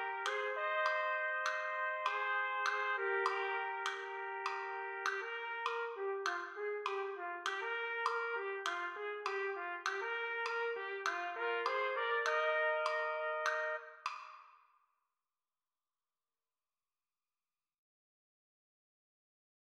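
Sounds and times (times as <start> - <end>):
B-flat trumpet playing at slower tempo: 0.0 - 14.0.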